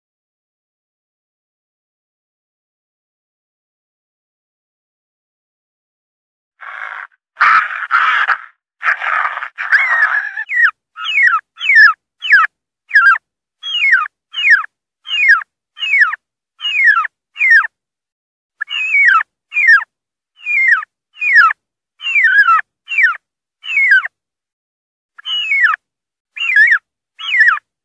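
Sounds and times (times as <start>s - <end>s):
wild turkey distress calling: 6.6s - 17.7s, 18.6s - 24.1s, 25.2s - 25.8s, 26.4s - 27.7s.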